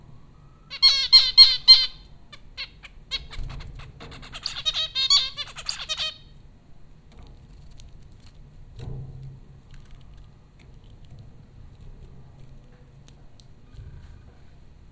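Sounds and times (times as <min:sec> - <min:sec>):
zebra finch calls: 0:00.7 - 0:06.3.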